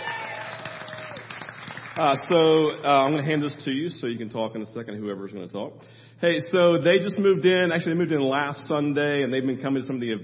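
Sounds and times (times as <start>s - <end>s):
audience clapping: 0.0s - 3.2s
speech: 2.0s - 10.2s.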